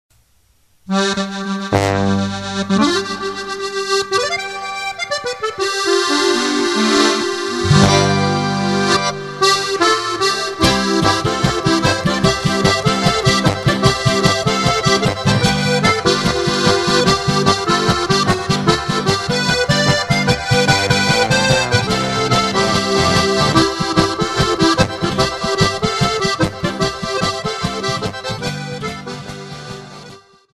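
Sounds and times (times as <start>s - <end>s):
polka music: 0.9s - 30.5s.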